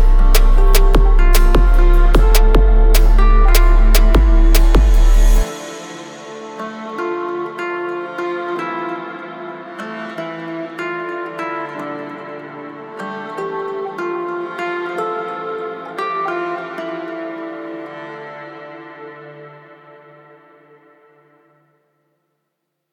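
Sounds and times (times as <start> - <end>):
low bass tone at 33 to 37 Hz: 0.0 - 5.5.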